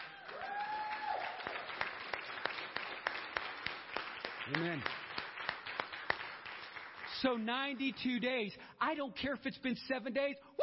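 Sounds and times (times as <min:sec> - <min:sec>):
audience applause: 0:00.0 - 0:07.4
speech: 0:04.5 - 0:05.0, 0:07.2 - 0:10.6.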